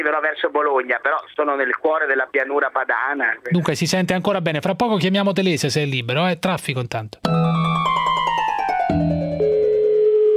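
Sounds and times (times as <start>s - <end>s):
speech: 0.0s - 7.6s
mobile phone ringing: 7.3s - 10.3s.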